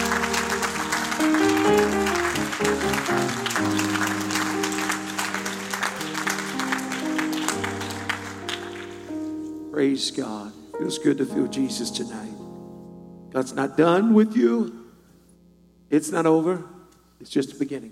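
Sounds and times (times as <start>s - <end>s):
audience applause: 0.0s - 9.1s
speech: 10.0s - 12.4s, 13.3s - 14.8s, 15.9s - 17.9s.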